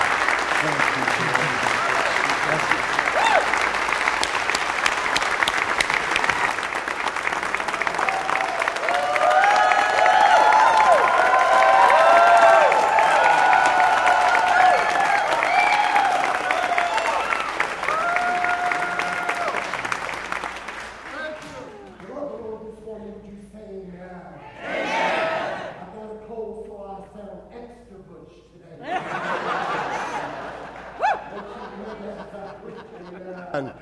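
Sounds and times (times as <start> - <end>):
church audience applause welcoming the founder of Metropolitan Community Churches: 0.0 - 22.1
church audience cheering at Resurrection MCC: 1.3 - 20.0
laughter: 28.8 - 33.8.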